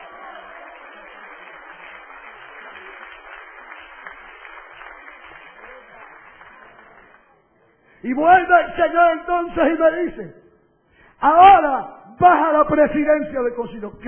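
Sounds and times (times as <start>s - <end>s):
audience applause: 0.0s - 7.5s
speech: 8.0s - 10.4s, 11.2s - 14.0s.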